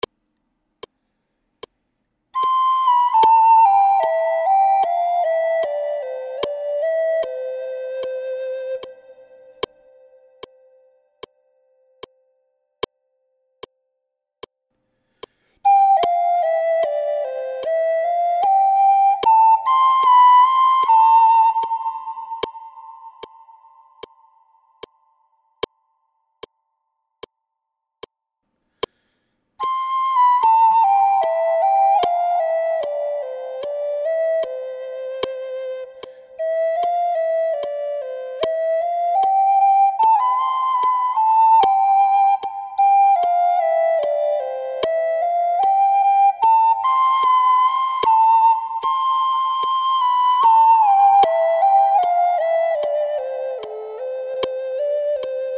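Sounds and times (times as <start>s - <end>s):
flute: 2.4s - 12.1s, 15.6s - 25.2s, 29.6s - 55.5s.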